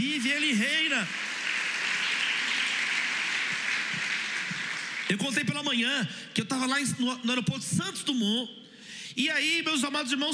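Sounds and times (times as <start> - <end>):
speech: 0.0 - 1.3, 5.1 - 8.6, 9.2 - 10.3
crowd applauding: 0.8 - 5.7.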